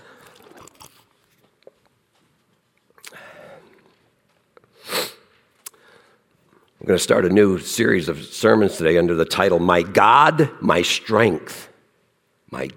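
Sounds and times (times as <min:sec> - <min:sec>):
preacher sipping and swallowing water: 0:00.0 - 0:01.9, 0:02.9 - 0:04.0
speech: 0:06.8 - 0:11.7, 0:12.5 - 0:12.7.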